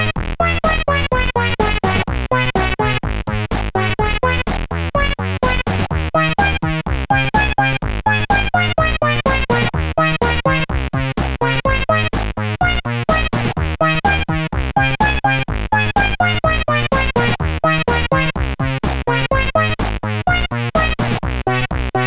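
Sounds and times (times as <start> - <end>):
Christmas tune on a sound chip: 0.0 - 22.0.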